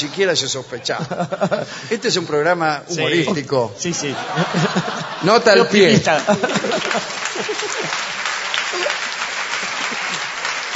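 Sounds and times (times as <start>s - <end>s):
speech: 0.0s - 9.0s
laughter: 0.7s - 2.0s, 3.1s - 10.7s
audience clapping: 5.6s - 10.7s.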